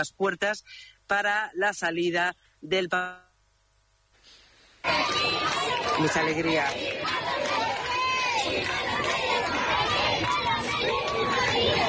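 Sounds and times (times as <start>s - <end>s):
speech: 0.0s - 3.3s, 4.8s - 6.9s
large crowd cheering and shouting: 4.8s - 11.8s.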